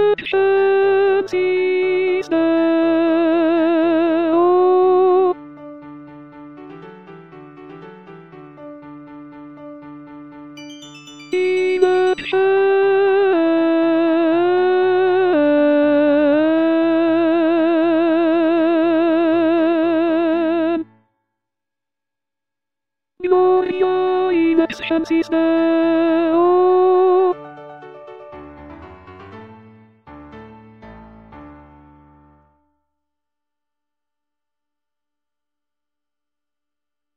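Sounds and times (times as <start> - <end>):
alto voice singing a sacred choral work: 0.0 - 5.5, 11.3 - 21.0, 23.2 - 27.4.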